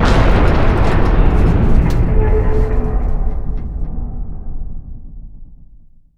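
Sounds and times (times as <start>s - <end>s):
impact: 0.0s - 4.0s.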